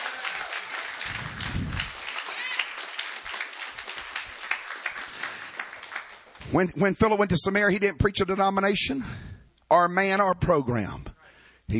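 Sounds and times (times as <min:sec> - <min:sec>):
audience clapping hands: 0:00.0 - 0:06.7
speech: 0:06.5 - 0:11.1.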